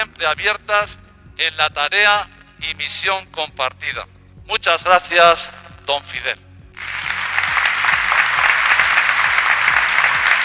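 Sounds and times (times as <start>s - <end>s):
speech: 0.2s - 6.9s
long audience applause: 6.8s - 10.4s.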